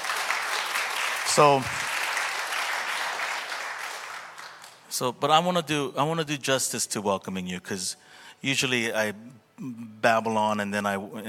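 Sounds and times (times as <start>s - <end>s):
congregation applauding during a church service: 0.0s - 5.0s
speech: 1.3s - 1.8s, 5.0s - 11.2s.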